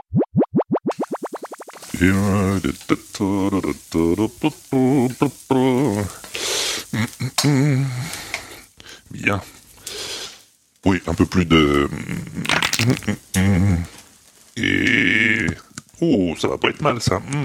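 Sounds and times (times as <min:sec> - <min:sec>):
food sizzling as it fries in a pan: 0:01.1 - 0:12.1, 0:13.1 - 0:15.8
speech: 0:02.0 - 0:08.3, 0:09.1 - 0:09.6, 0:10.8 - 0:14.0, 0:14.6 - 0:17.4.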